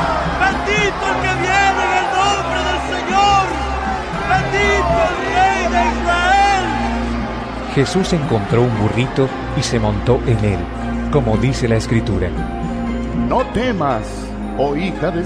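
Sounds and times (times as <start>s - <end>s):
crowd shouting Hosanna with palm branches: 0.0s - 11.4s
speech: 7.8s - 12.6s, 13.3s - 15.2s.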